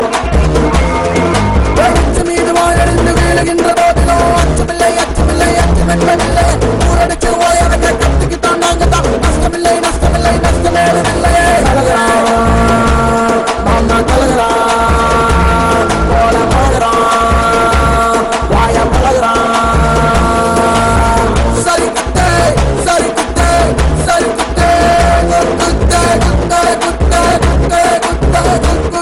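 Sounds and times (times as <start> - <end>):
Tamil kuthu dance music: 0.0 - 29.0.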